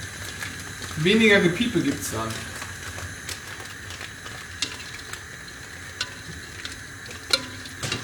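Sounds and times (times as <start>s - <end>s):
food sizzling in a pan on gas: 0.0s - 8.0s
speech: 1.0s - 2.5s
stirring clinks and scrapes: 3.6s - 8.0s.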